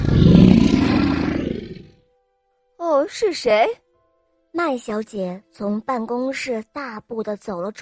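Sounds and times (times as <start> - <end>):
lion roaring: 0.0 - 2.0
speech: 3.1 - 3.8, 4.5 - 7.7.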